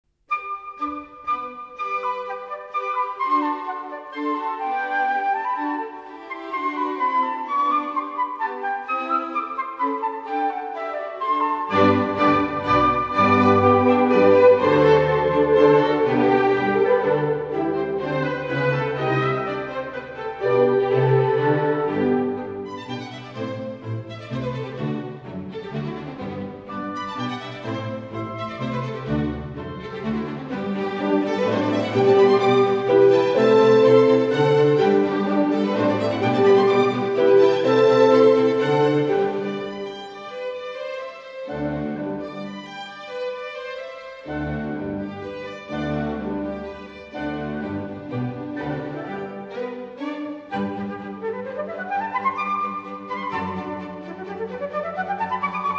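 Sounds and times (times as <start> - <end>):
flute concerto rondo: 0.3 - 55.7.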